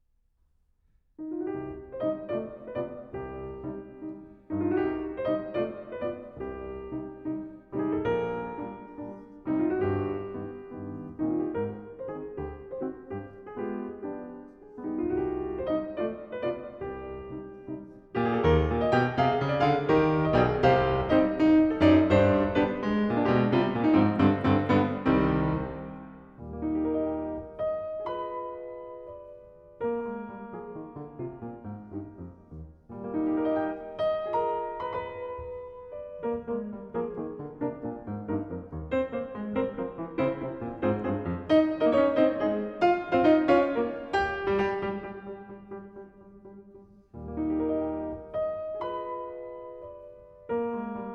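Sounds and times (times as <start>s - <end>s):
piano piece: 1.2s - 51.1s.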